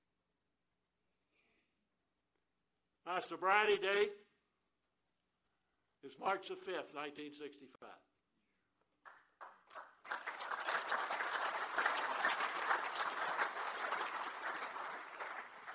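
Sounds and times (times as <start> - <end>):
speech: 3.1 - 4.2, 6.0 - 8.1
applause at an Alcoholics Anonymous gathering: 9.0 - 15.7.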